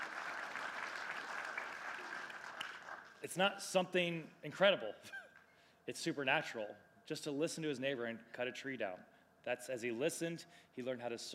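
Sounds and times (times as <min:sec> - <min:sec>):
audience clapping: 0:00.0 - 0:03.2
speech: 0:03.2 - 0:05.2, 0:05.9 - 0:11.3.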